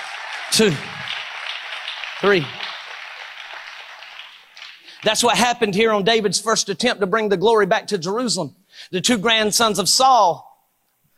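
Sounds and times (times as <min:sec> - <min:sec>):
audience hand clapping: 0:00.0 - 0:05.6
speech: 0:00.5 - 0:01.0, 0:02.2 - 0:02.6, 0:05.0 - 0:10.5.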